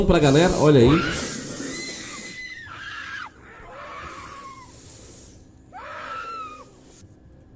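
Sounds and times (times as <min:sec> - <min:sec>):
speech: 0:00.0 - 0:01.3
breathy hissing background: 0:00.0 - 0:07.2
peccary squealing as an anaconda attacks: 0:00.2 - 0:07.0.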